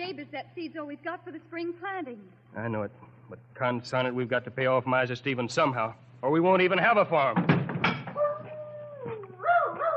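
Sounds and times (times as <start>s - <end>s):
speech: 0.1s - 7.6s
dog howling: 8.2s - 9.9s.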